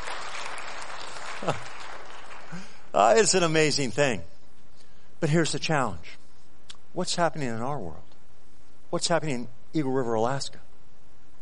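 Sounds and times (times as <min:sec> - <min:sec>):
audience hand clapping: 0:00.0 - 0:02.8
speech: 0:01.4 - 0:01.8, 0:02.5 - 0:04.3, 0:05.2 - 0:06.2, 0:06.9 - 0:08.0, 0:08.9 - 0:10.7.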